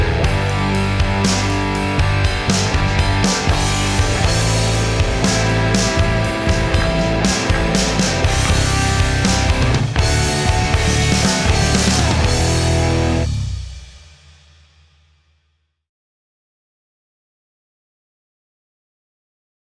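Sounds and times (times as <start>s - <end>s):
blues guitar backing: 0.0s - 13.6s.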